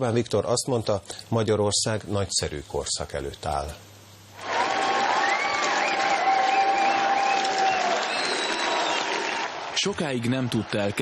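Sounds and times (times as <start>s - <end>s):
speech: 0.0s - 3.9s, 9.8s - 11.0s
crowd cheering and clapping loudly: 4.4s - 11.0s.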